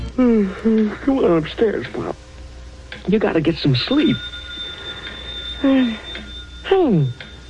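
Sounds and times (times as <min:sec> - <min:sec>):
speech: 0:00.2 - 0:02.2, 0:03.1 - 0:04.4, 0:05.6 - 0:06.1, 0:06.7 - 0:07.2
telephone ringing late at night: 0:03.5 - 0:07.4.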